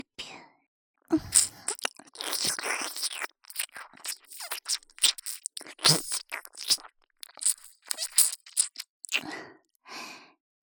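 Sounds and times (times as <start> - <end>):
ear licking in right channel: 1.1 - 9.3.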